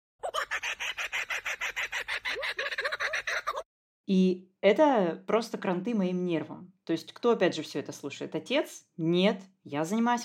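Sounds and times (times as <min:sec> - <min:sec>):
kookaburra laughing call: 0:00.2 - 0:03.6
speech: 0:04.1 - 0:10.2.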